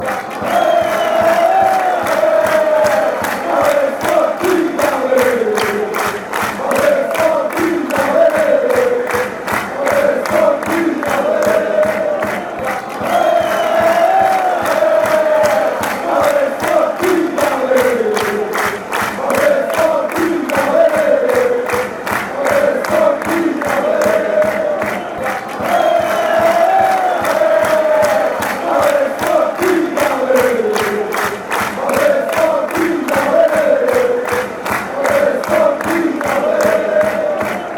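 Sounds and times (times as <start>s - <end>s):
football crowd chanting: 0.0s - 37.7s.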